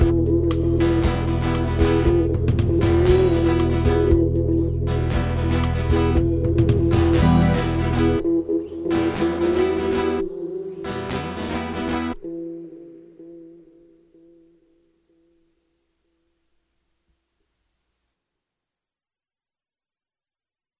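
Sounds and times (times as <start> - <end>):
instrumental music: 0.0 - 12.8.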